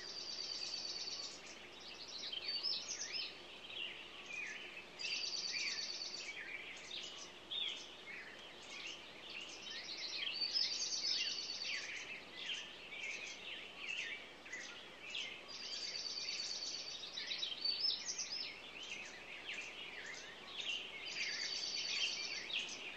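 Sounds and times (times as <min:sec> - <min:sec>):
morning songbirds singing in a busy chorus: 0:00.0 - 0:22.9.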